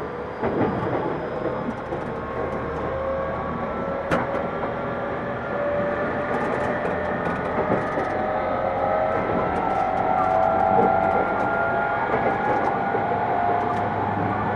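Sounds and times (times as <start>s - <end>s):
Tokyu 2000 series train running between Shibuya and Azamino: 0.0s - 14.5s
faint rattles and clicks: 0.4s - 3.0s, 6.0s - 14.0s.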